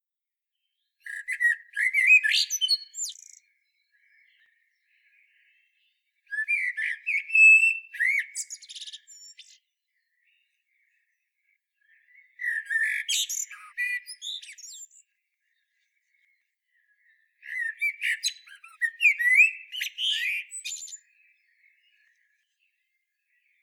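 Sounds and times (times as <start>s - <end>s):
Common blackbird singing fluted whistles and twitters: 1.0s - 3.5s, 6.3s - 9.6s, 12.3s - 15.0s, 17.4s - 21.5s.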